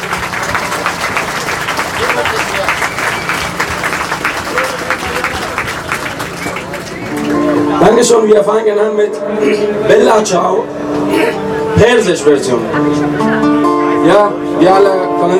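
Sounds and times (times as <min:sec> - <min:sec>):
audience applause welcoming a band at a peace demonstration: 0:00.0 - 0:07.9
speech: 0:08.0 - 0:15.3.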